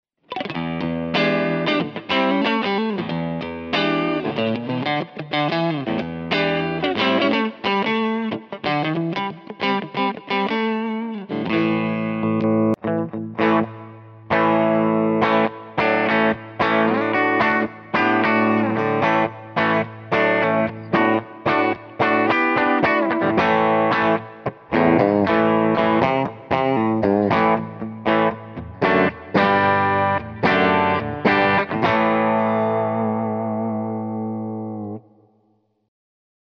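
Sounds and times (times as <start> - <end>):
electric guitar through a PlexiRanger boost at middle setting: 0.2 - 35.4.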